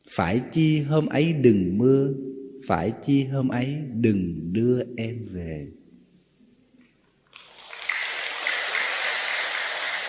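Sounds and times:
speech: 0:00.2 - 0:05.8
listening audience applause: 0:07.5 - 0:10.0.

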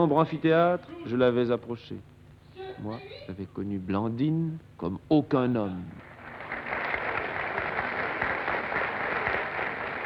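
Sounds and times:
speech: 0:00.0 - 0:02.1, 0:02.8 - 0:06.1
theatre audience applauding: 0:06.0 - 0:10.0.

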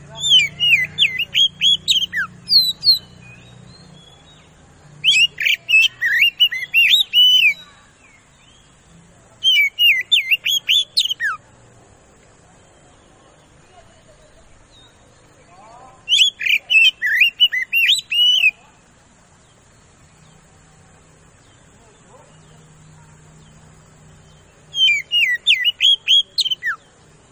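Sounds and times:
Oriental magpie-robin singing fast loud whistled lure song: 0:00.1 - 0:04.4, 0:05.0 - 0:08.2, 0:09.4 - 0:11.4, 0:16.0 - 0:18.6, 0:24.4 - 0:26.9.

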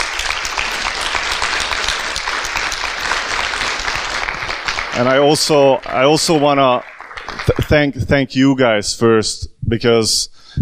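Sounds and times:
audience applause: 0:00.0 - 0:07.8
speech: 0:05.0 - 0:10.4.

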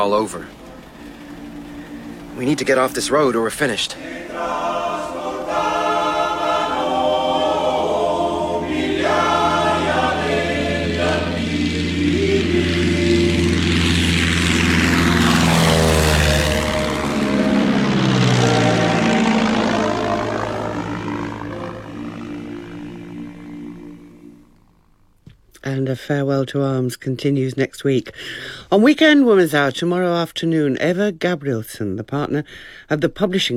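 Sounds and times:
speech: 0:00.0 - 0:00.6, 0:02.4 - 0:05.0, 0:25.9 - 0:33.5
propeller warplanes droning overhead: 0:00.0 - 0:25.2.

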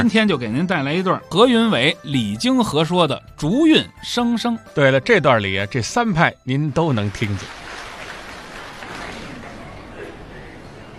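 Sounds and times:
speech: 0:00.0 - 0:07.6
audience applause at a live kuaiban clapper-talk performance: 0:07.0 - 0:10.2.

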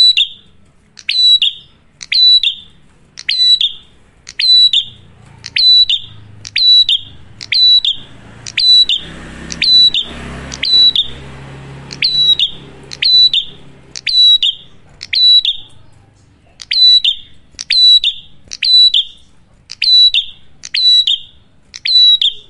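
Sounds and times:
duet of Cililin and Kapas Tembak prinias singing: 0:00.0 - 0:22.4.

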